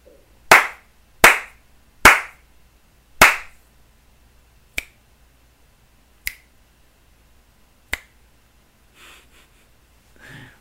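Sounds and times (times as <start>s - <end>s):
hand slaps: 0.5s - 2.4s, 3.2s - 3.6s, 4.8s - 5.0s, 6.2s - 6.5s, 7.9s - 8.2s
finger snaps: 4.7s - 5.0s, 6.2s - 6.5s, 7.9s - 8.2s.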